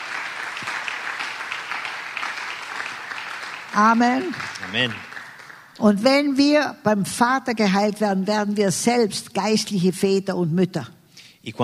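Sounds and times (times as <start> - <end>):
audience applause: 0.0 - 5.8
speech: 3.8 - 5.1, 5.8 - 11.6.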